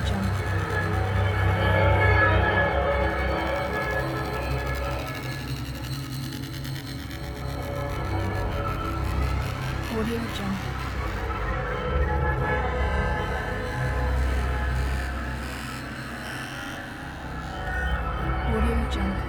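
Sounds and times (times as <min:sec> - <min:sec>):
dark ambient soundscape: 0:00.0 - 0:19.2.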